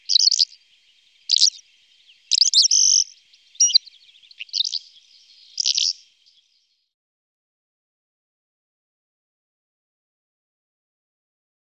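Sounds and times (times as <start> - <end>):
calandra lark calling: 0.0 - 6.6.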